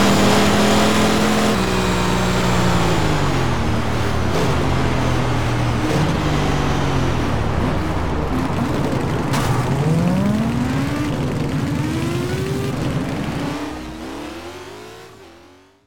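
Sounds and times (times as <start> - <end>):
Ducati Monster S4R motorcycle engine: 0.0 - 15.8.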